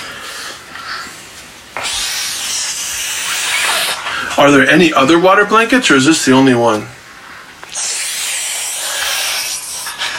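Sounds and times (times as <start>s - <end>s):
child imitating a snake with a breathy hiss: 1.8s - 4.2s, 7.6s - 10.1s
speech: 4.4s - 7.0s.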